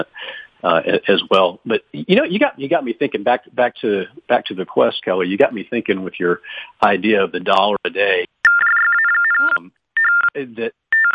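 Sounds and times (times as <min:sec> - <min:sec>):
speech: 0:00.0 - 0:08.7, 0:09.4 - 0:11.1
mobile phone electronic ringtone: 0:08.5 - 0:11.1.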